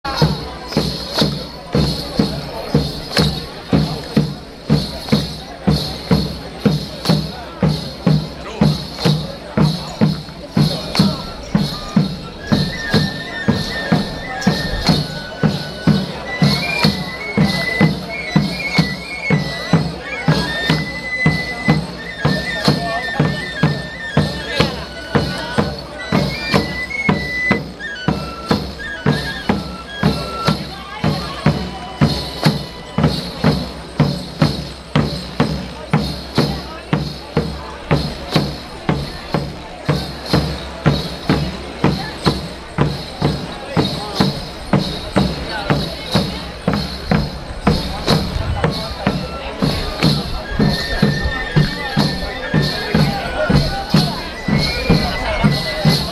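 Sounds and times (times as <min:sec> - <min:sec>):
drum playing in the street: 0:00.1 - 0:56.1.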